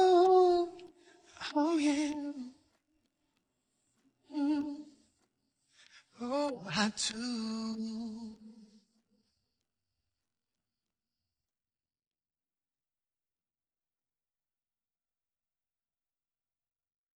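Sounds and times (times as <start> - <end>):
person singing: 0.0 - 2.6, 4.3 - 5.1, 6.1 - 8.8.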